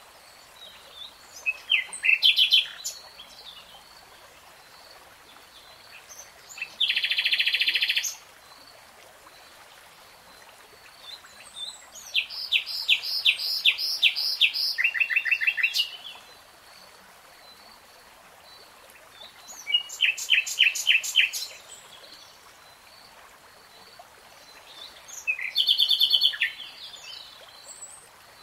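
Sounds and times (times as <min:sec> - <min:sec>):
nightingale song: 0:00.6 - 0:03.8, 0:05.5 - 0:08.2, 0:10.9 - 0:16.3, 0:19.2 - 0:23.0, 0:23.8 - 0:28.4.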